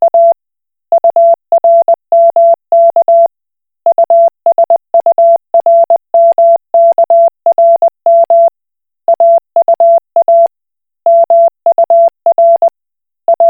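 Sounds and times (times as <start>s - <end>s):
Koch Morse code beeps: 0.0s - 0.4s, 1.0s - 3.3s, 3.9s - 8.5s, 9.1s - 10.5s, 11.1s - 12.7s, 13.3s - 13.4s.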